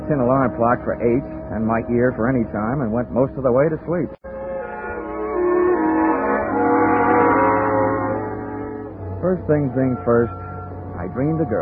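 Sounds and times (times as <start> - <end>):
speech: 0.1 - 4.3, 9.2 - 10.4, 11.0 - 11.6
fire engine siren: 4.3 - 11.6.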